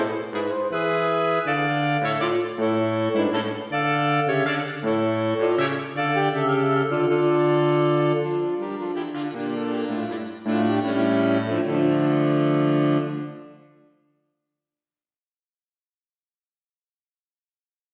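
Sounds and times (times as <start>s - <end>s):
saxophone quartet playing a dance: 0.0s - 13.8s.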